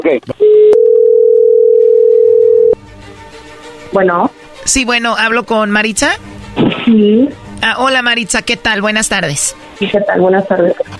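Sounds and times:
speech: 0.1 - 0.4, 3.9 - 6.3, 6.9 - 10.9
telephone tone: 0.4 - 2.8.

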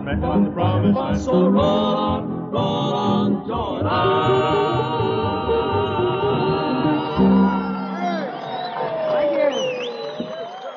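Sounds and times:
speech: 0.1 - 4.7
audience applauding after a song: 5.8 - 10.7.

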